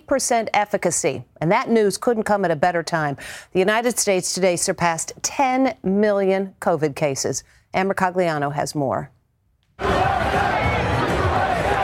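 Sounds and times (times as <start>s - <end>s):
speech: 0.1s - 9.2s
large crowd cheering and shouting in celebration outdoors: 9.8s - 11.8s.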